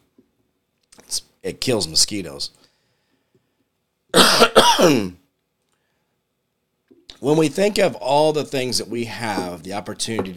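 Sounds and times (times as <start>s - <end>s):
speech: 1.1s - 2.6s, 4.7s - 5.2s, 7.2s - 10.3s
cough: 4.1s - 5.2s
throat clearing: 4.2s - 5.2s.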